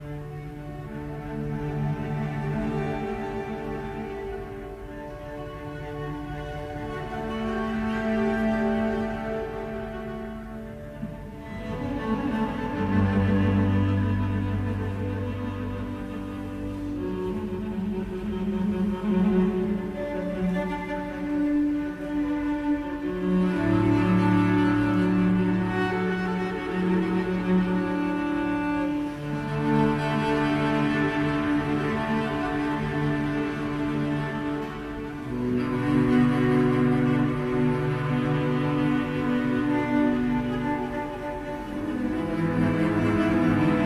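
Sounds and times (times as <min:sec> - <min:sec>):
solo cello suite: 0:00.0 - 0:43.8.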